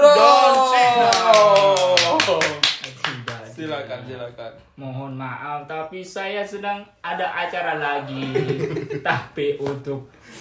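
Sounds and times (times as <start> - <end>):
audience applause: 0.8 - 3.4
speech: 3.6 - 10.3.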